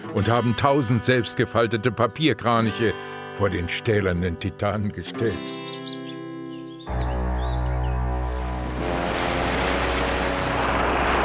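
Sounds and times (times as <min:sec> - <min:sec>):
speech: 0:00.2 - 0:05.6
Motoyasu River water bubbling and churning: 0:07.6 - 0:11.2.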